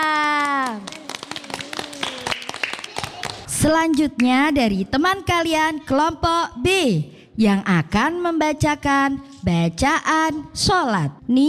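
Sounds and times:
audience applause at a group recitation event: 0.4 - 3.5
speech: 3.6 - 11.4.

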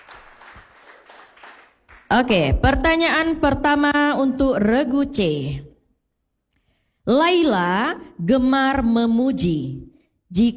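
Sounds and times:
audience clapping for team C at a quiz contest: 0.0 - 2.9
speech: 2.1 - 5.7, 7.1 - 10.5.

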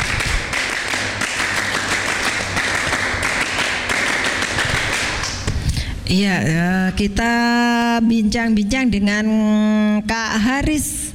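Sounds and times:
scout clapping pattern: 0.0 - 5.8
speech: 6.1 - 11.0.

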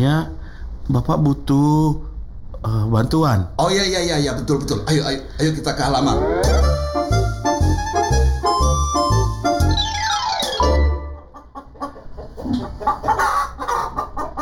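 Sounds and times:
speech: 0.0 - 7.0
steady rhythmic thumping: 5.8 - 11.2
chickens clucking: 6.0 - 14.4
sweeping chicken squawk: 9.8 - 14.4.

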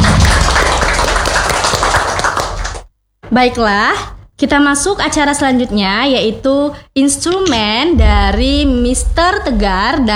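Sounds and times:
audience applause: 0.0 - 2.9
speech: 3.3 - 10.1.

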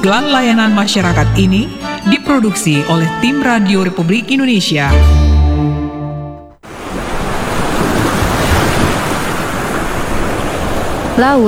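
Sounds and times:
speech: 0.0 - 5.2, 11.2 - 11.4
big ocean waves crashing on the shore: 6.6 - 11.4.

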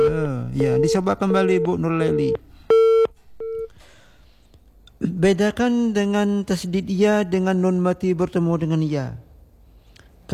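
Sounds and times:
telephone busy tone after a dropped call: 0.0 - 3.7
faint noise: 0.0 - 10.3
speech: 0.4 - 2.5, 5.0 - 9.2.

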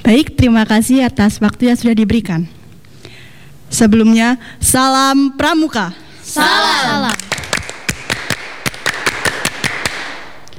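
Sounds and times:
faint hum: 0.0 - 10.5
speech: 0.1 - 2.6, 3.7 - 7.2
group clapping the scout rhythm: 6.7 - 10.5.

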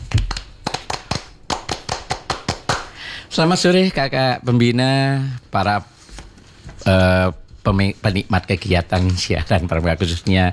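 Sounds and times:
Scout rhythmic hand-clapping routine: 0.0 - 3.1
speech: 3.3 - 5.9, 6.8 - 10.5.

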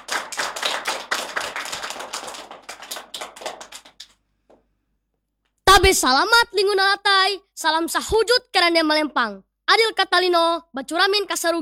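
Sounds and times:
audience clapping to welcome a student about to give a speech: 0.0 - 4.2
speech: 5.8 - 11.5.

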